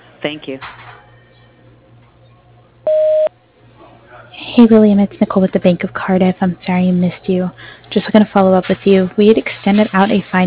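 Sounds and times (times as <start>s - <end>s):
speech: 0.2s - 0.8s, 4.6s - 10.4s
voicemail recording tone: 2.9s - 3.3s.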